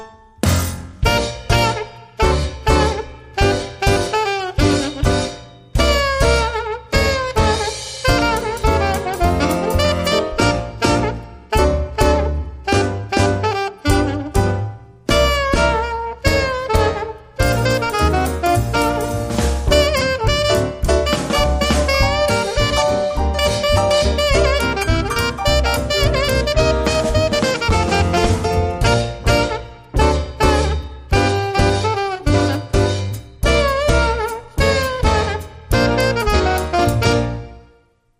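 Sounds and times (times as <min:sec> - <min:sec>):
theme music: 0:00.4 - 0:06.3, 0:07.0 - 0:37.6.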